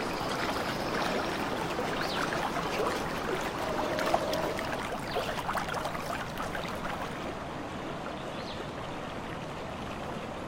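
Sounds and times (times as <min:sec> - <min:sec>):
trickling stream: 0:00.0 - 0:10.4.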